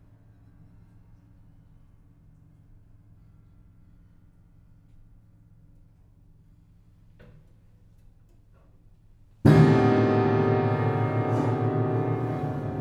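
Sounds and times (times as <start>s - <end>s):
soundscape: 9.5s - 12.7s.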